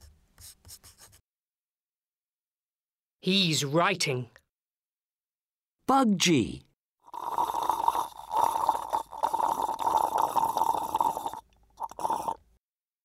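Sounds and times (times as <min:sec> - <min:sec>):
speech: 0:03.2 - 0:04.4, 0:05.9 - 0:06.7
person gulping liquid while drinking: 0:07.1 - 0:12.6.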